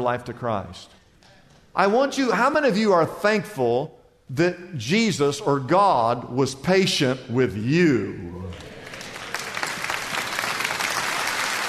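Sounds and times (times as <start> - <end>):
speech: 0.0 - 1.0, 1.8 - 8.7
audience clapping: 8.4 - 11.6.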